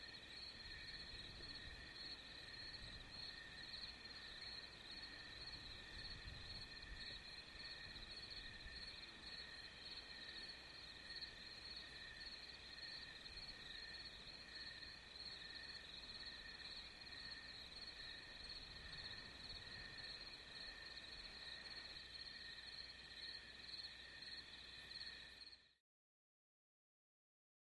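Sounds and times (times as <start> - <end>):
cricket chorus: 0.0 - 25.8.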